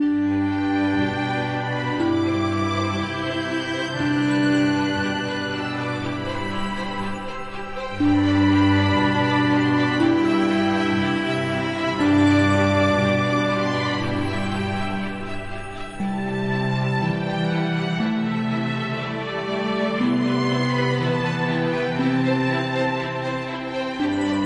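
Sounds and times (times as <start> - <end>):
refreshing ambient music: 0.0 - 24.4.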